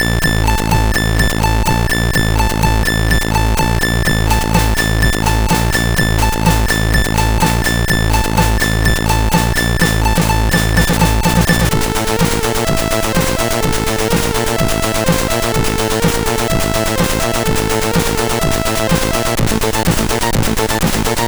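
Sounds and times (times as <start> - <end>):
techno music: 0.0 - 21.2.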